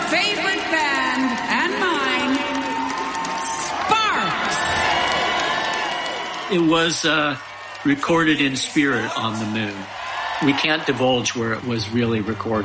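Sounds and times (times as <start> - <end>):
audience cheering and whooping a welcome for a performer: 0.0 - 12.6
audience shouting: 1.5 - 7.0, 7.6 - 11.3
speech: 6.5 - 12.6.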